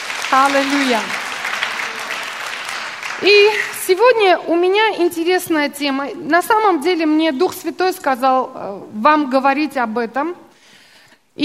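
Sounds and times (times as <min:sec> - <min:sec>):
audience applause: 0:00.0 - 0:04.0
speech: 0:00.3 - 0:01.2, 0:03.2 - 0:10.4.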